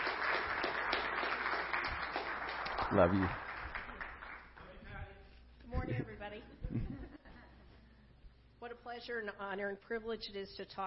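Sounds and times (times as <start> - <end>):
audience applause welcoming a speaker: 0.0 - 4.6
speech: 2.9 - 3.4, 5.9 - 7.0, 8.6 - 10.8.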